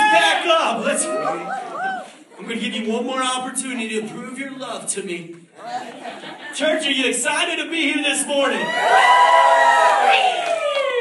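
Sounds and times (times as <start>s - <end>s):
church audience yelling: 0.0s - 2.2s, 7.8s - 11.0s
speech: 2.6s - 10.6s
laughter: 5.6s - 6.9s.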